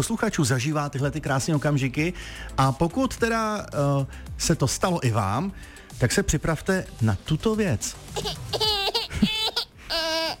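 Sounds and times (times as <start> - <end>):
speech: 0.0 - 9.3
small baby crying: 8.1 - 10.3.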